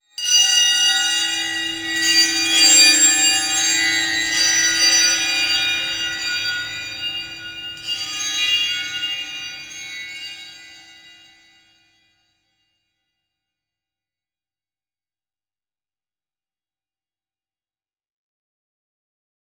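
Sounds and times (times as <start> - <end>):
temple bells: 0.2 - 11.3.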